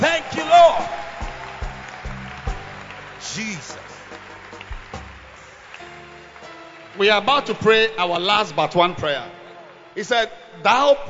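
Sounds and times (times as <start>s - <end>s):
audience clapping hands: 0.0s - 8.5s
speech: 7.0s - 9.4s, 10.0s - 11.0s.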